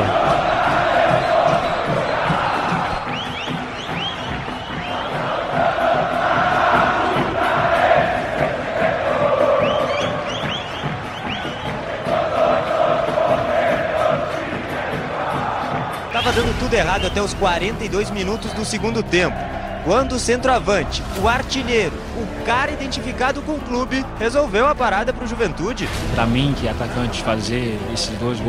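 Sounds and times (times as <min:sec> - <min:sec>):
football crowd at Juventude's Jaconi stadium roaring and singing: 0:00.0 - 0:28.4
shrill whistle-like cries: 0:00.4 - 0:05.2, 0:09.6 - 0:11.8
speech: 0:16.7 - 0:28.4.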